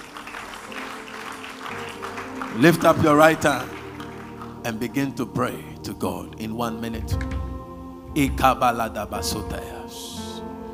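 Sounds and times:
audience clapping: 0:00.0 - 0:05.3
speech: 0:02.5 - 0:03.8, 0:04.6 - 0:07.5, 0:08.2 - 0:10.2.

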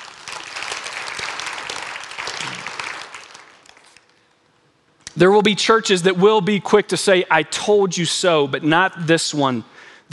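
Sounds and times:
audience clapping: 0:00.0 - 0:04.3
speech: 0:05.2 - 0:10.1.

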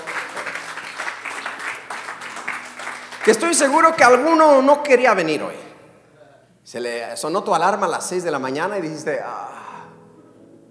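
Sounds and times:
audience applause for musicians: 0:00.0 - 0:04.0
speech: 0:03.3 - 0:05.6, 0:06.7 - 0:09.5.

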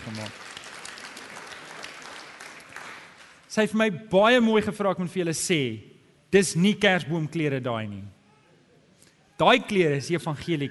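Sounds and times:
speech: 0:00.0 - 0:00.4, 0:03.5 - 0:08.2, 0:09.4 - 0:10.6
audience applauding: 0:00.0 - 0:03.4.

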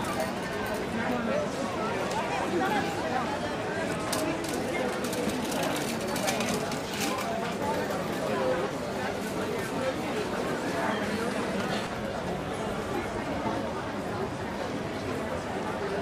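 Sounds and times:
restaurant murmur of overlapping voices and chatter: 0:00.0 - 0:16.0.

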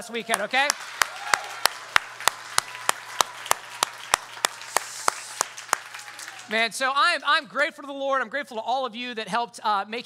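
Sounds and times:
speech: 0:00.0 - 0:01.3, 0:06.5 - 0:10.0
audience clapping in unison: 0:00.0 - 0:08.0.

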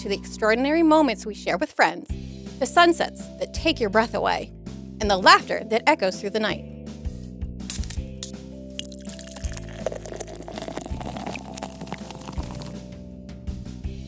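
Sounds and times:
speech: 0:00.0 - 0:06.7
lager pouring into a glass: 0:08.8 - 0:12.8.

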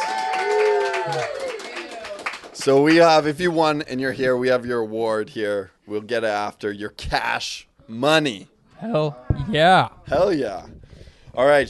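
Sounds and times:
people whooping and cheering: 0:00.0 - 0:02.3
audience applause: 0:00.0 - 0:03.0
speech: 0:02.6 - 0:10.8, 0:11.4 - 0:11.6.

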